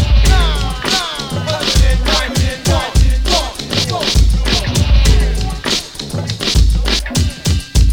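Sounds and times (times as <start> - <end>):
vocal noise: 0.1 - 7.7.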